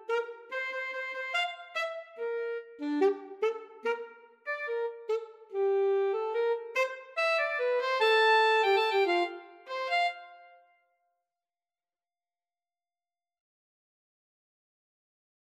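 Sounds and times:
alto saxophone playing an opera aria: 0.0 - 10.8.

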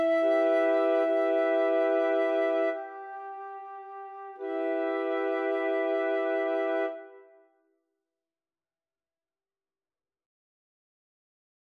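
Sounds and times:
flute quartet playing a folk song: 0.0 - 7.2.

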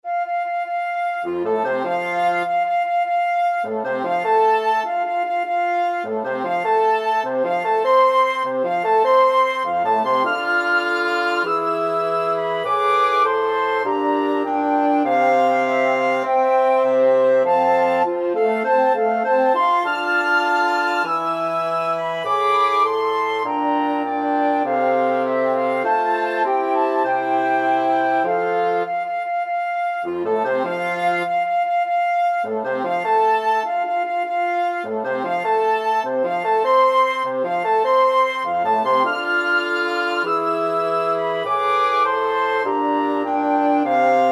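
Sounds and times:
flexible mixed ensemble of 4 players: 1.2 - 44.3.

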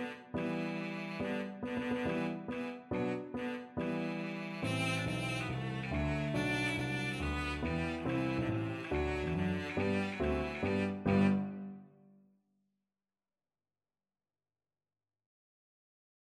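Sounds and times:
cello playing: 0.0 - 11.9.

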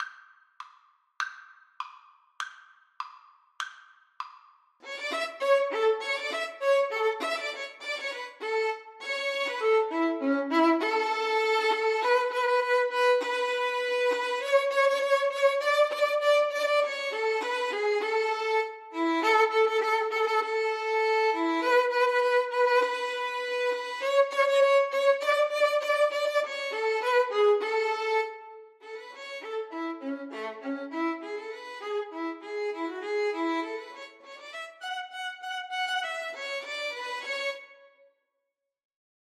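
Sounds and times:
violin duet: 4.8 - 37.9.

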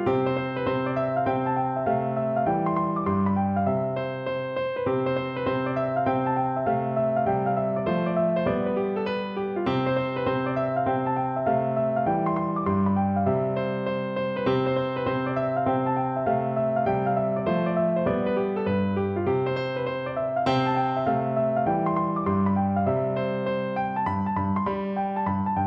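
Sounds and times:
piano folk tune: 0.0 - 25.6.

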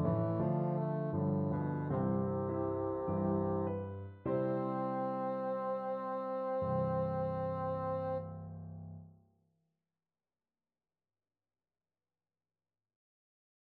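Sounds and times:
bassoon: 0.0 - 8.4.

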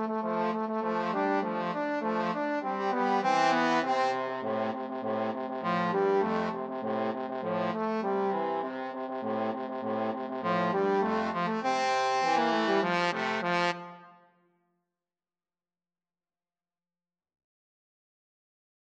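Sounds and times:
trombone duet: 0.0 - 14.0.

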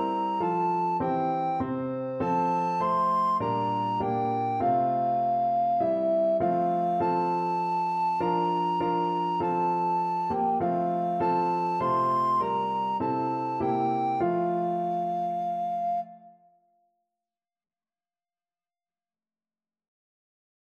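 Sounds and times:
alto recorder melody: 0.0 - 16.2.

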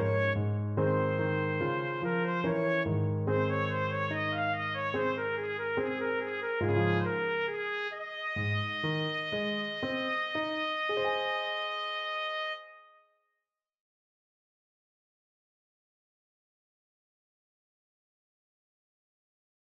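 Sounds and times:
trumpet duet: 0.0 - 13.0.

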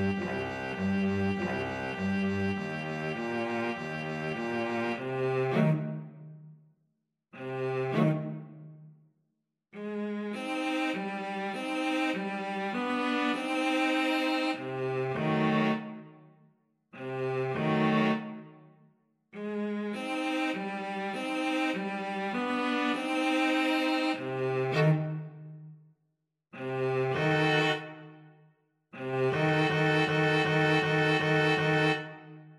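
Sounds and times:
string trio playing: 0.0 - 6.1, 7.4 - 8.4, 9.8 - 16.0, 17.0 - 18.4, 19.4 - 25.3, 26.6 - 27.9, 29.0 - 32.2.

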